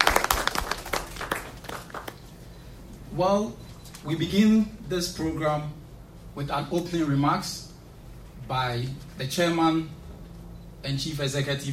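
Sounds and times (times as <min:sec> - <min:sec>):
audience clapping: 0:00.0 - 0:02.3
speech: 0:03.2 - 0:05.8, 0:06.4 - 0:07.7, 0:08.4 - 0:10.0, 0:10.8 - 0:11.7.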